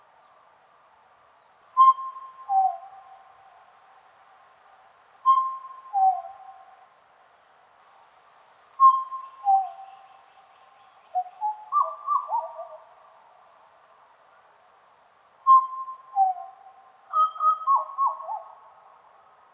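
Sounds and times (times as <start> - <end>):
black butcherbird song: 1.4 - 4.1, 5.2 - 6.7, 8.8 - 13.2, 15.4 - 18.6.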